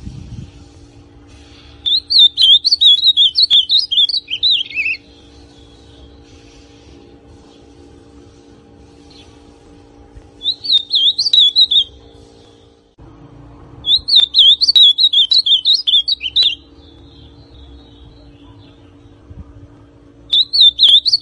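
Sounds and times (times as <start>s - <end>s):
ultramarine grosbeak song: 1.6s - 6.5s, 10.4s - 12.8s, 13.8s - 19.2s, 20.2s - 21.1s.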